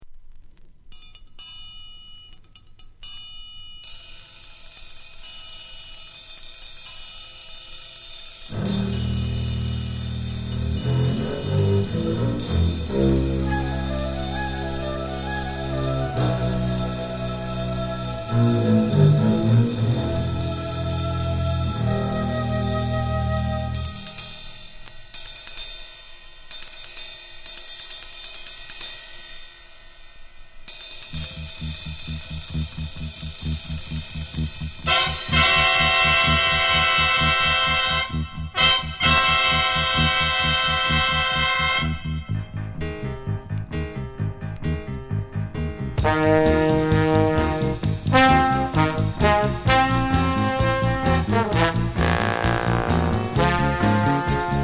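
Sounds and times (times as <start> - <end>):
jazz music: 4.6 - 24.8, 31.1 - 54.6.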